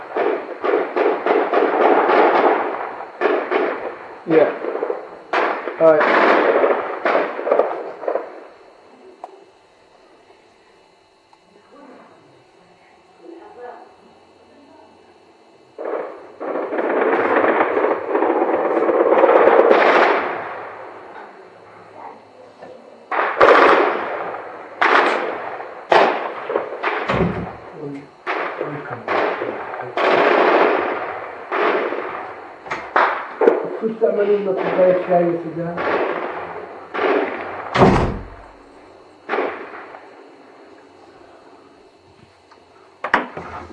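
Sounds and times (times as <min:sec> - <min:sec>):
gunfire in a gunfight: 0:00.0 - 0:08.7, 0:15.8 - 0:22.2, 0:23.1 - 0:40.2
speech: 0:04.3 - 0:04.6, 0:05.8 - 0:06.2, 0:34.2 - 0:35.9.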